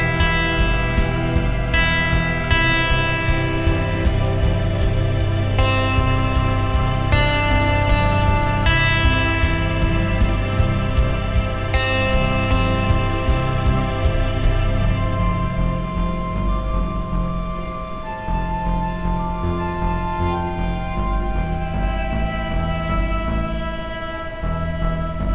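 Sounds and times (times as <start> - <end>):
ambient sound: 0.0 - 25.3.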